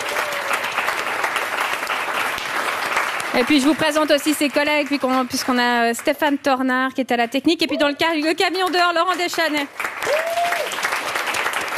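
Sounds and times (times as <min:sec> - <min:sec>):
audience applause: 0:00.0 - 0:05.8, 0:08.6 - 0:11.7
speech: 0:03.4 - 0:10.4.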